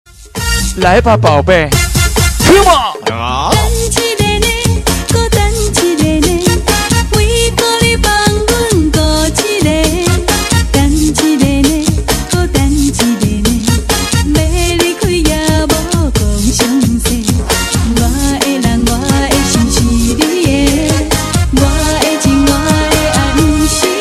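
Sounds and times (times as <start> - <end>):
Taiwan techno music: 0.4 - 24.0.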